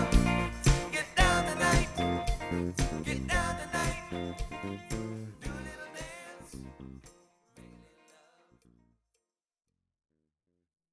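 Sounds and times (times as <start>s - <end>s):
cover band playing: 0.0s - 6.5s.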